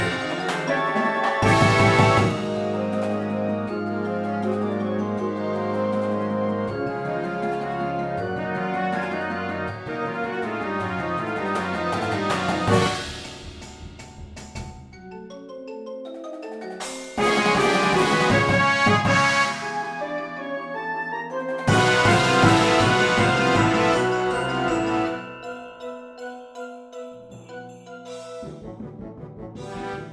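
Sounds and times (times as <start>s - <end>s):
classical suite: 0.0s - 13.2s, 17.2s - 25.8s.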